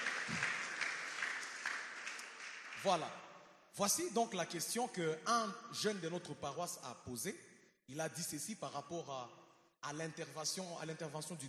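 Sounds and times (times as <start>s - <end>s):
congregation applauding in a church service: 0.0s - 3.5s
speech: 2.8s - 11.4s.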